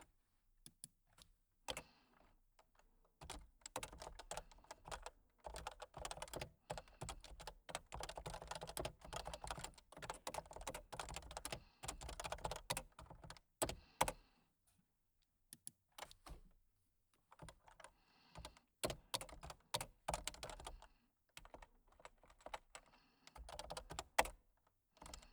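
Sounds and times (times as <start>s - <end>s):
breathing: 1.7s - 2.4s, 3.9s - 14.6s, 17.4s - 24.4s, 25.0s - 25.3s
typing: 3.2s - 14.2s, 17.4s - 20.8s, 21.4s - 24.4s.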